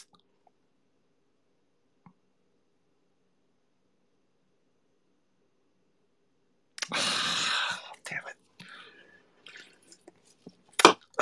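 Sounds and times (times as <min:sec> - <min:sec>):
person drinking water: 0:06.8 - 0:07.9, 0:08.6 - 0:11.1.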